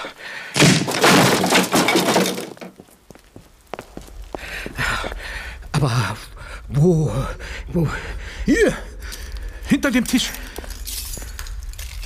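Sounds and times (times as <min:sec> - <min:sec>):
wooden door being forced open: 0:00.6 - 0:02.7
speech: 0:05.8 - 0:08.8, 0:09.8 - 0:10.4.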